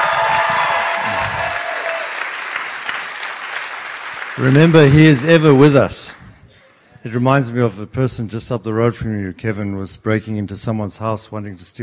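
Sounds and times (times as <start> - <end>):
cheers: 0.0 - 5.0
audience applause: 0.0 - 5.8
speech: 4.4 - 6.2, 7.0 - 11.8.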